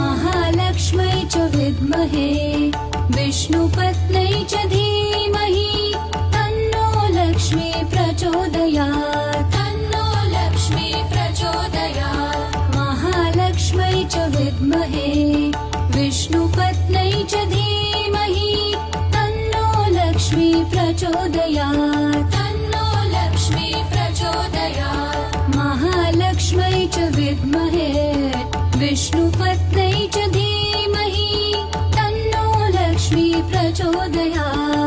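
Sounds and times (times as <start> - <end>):
devotional mantra chanting: 0.0 - 34.8.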